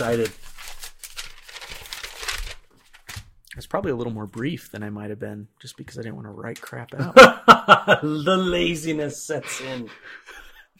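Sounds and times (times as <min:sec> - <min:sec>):
speech: 0:00.0 - 0:00.5, 0:03.7 - 0:10.7
paper notebook crinkling and rustling as it is handled: 0:00.0 - 0:03.4.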